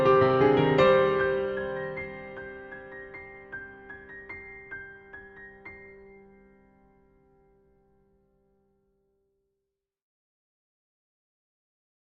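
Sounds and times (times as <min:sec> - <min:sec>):
piano: 0:00.0 - 0:09.2.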